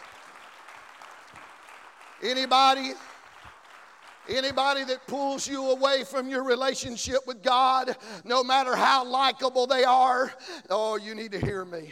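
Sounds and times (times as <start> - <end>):
audience clapping hands: 0.0 - 6.3
speech: 2.2 - 3.1, 4.3 - 11.9.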